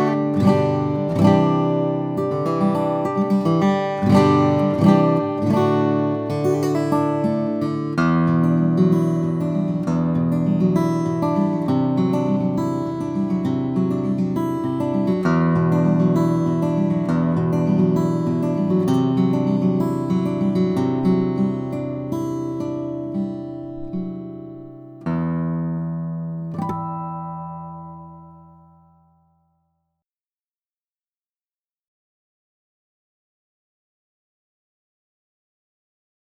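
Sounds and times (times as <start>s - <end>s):
flattop steel-string guitars: 0.0s - 28.8s.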